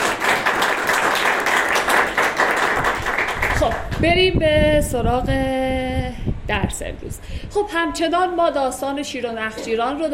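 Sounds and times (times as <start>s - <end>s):
audience clapping at a class on Hafez and the Masnavi: 0.0s - 4.0s
speech: 3.6s - 10.1s.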